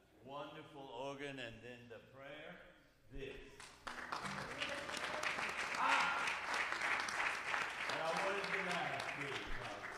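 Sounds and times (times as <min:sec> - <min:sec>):
speech: 0:00.3 - 0:04.7
clapping: 0:03.6 - 0:09.9.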